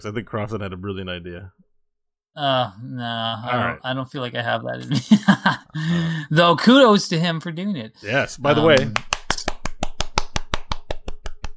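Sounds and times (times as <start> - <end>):
speech: 0.0 - 1.7, 2.4 - 9.1
muted applause: 8.5 - 11.5.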